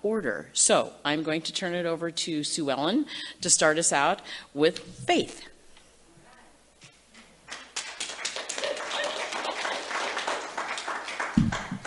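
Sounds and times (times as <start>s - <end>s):
speech: 0.0s - 5.5s
audience applauding: 7.5s - 11.8s.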